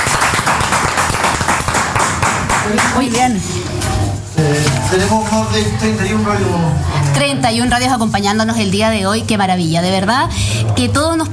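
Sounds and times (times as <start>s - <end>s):
crowd applause for participating radio stations: 0.0s - 3.1s
speech: 2.7s - 3.8s, 4.4s - 11.3s.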